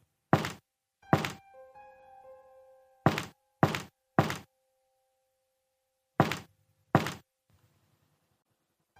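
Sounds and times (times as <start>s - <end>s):
heavy dull knocks on a door: 0.3s - 1.4s, 3.1s - 4.5s, 6.2s - 7.2s.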